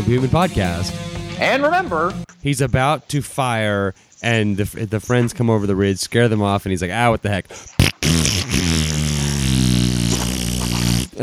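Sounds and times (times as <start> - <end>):
speech: 0.1 - 8.4
fart noise: 7.8 - 11.2.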